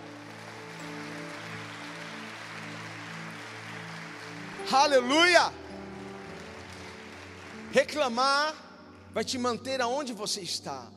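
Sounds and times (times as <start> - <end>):
audience applauding: 0.0 - 8.6
speech: 4.7 - 5.6, 7.7 - 8.6, 9.2 - 10.9.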